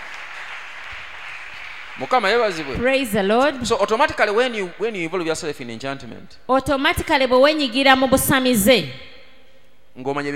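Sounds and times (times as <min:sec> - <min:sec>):
congregation applause during a church sermon: 0:00.0 - 0:04.4
speech: 0:02.0 - 0:09.1, 0:10.0 - 0:10.3.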